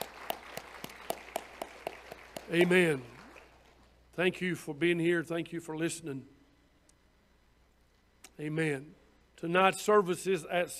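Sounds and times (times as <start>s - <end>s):
audience hand clapping: 0.0s - 3.8s
faint room hum: 0.0s - 10.7s
speech: 2.5s - 3.1s, 4.2s - 6.4s, 8.4s - 10.7s.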